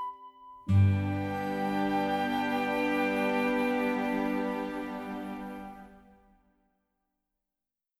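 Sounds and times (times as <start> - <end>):
instrumental music: 0.0 - 6.4.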